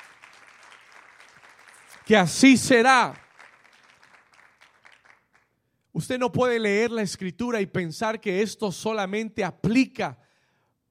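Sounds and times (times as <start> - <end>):
audience applause: 0.0 - 5.4
speech: 2.1 - 3.2, 6.0 - 10.2.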